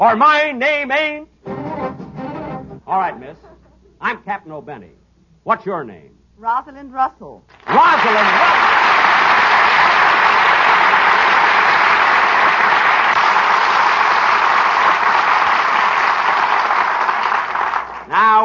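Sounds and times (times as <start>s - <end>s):
speech: 0.0s - 1.3s, 2.9s - 9.1s, 18.1s - 18.4s
crowd applause: 7.6s - 18.1s.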